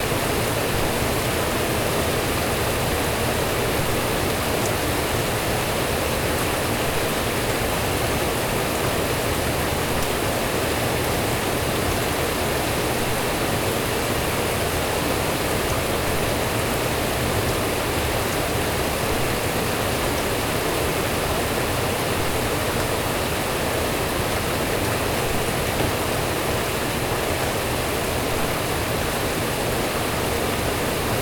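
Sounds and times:
thunderstorm rain: 0:00.0 - 0:31.2.

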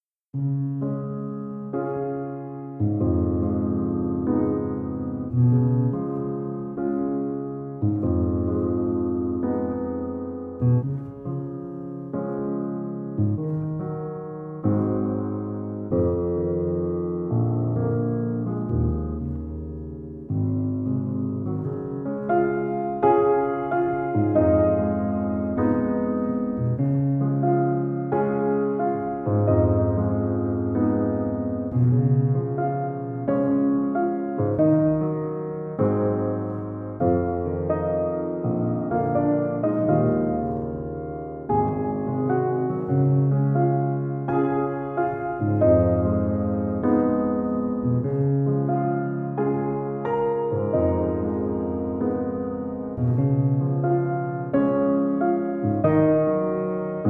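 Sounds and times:
relaxing ambient piano music: 0:00.7 - 0:57.0.

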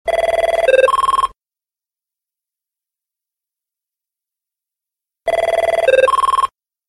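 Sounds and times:
AVAYA phone ringing: 0:00.1 - 0:01.4, 0:05.3 - 0:06.6.

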